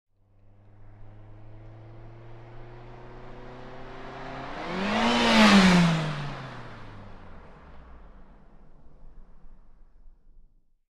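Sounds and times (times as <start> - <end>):
car passing by fast: 0.3 - 9.5.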